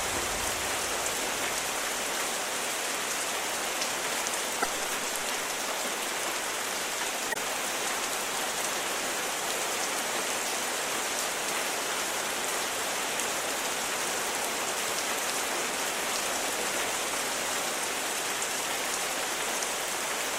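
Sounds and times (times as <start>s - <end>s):
rain storm: 0.0s - 20.3s.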